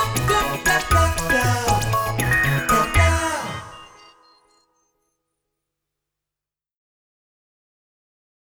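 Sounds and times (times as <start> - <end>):
funky electric pop music: 0.0 - 4.0.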